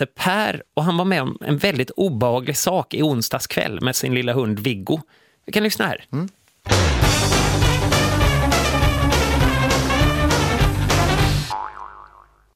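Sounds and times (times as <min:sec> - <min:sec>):
speech: 0:00.0 - 0:07.3
show's signature jingle tune: 0:06.7 - 0:11.5.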